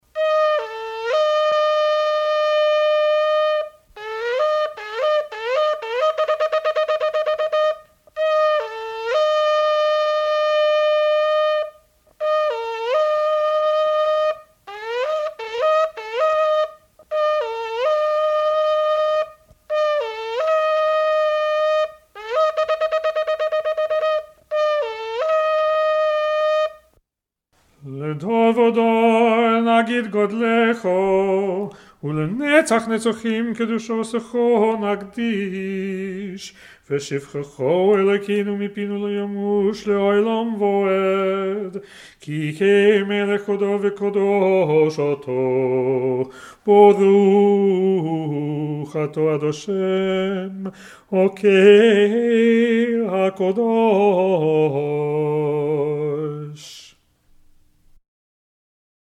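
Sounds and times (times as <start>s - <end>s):
Jewish shofar blowing: 0.0s - 27.0s, 28.0s - 36.6s, 37.5s - 56.9s
Jewish liturgical chanting: 27.8s - 56.9s.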